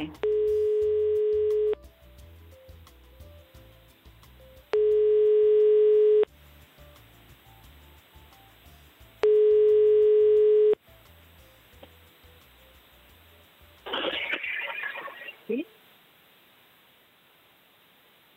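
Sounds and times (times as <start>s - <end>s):
telephone line tone while a call is placed: 0.2s - 1.8s, 4.8s - 6.3s, 9.2s - 10.8s.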